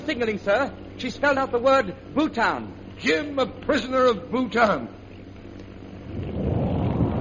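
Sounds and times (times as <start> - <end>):
speech: 0.1 - 5.0
bomb explosion rumble: 6.1 - 7.1.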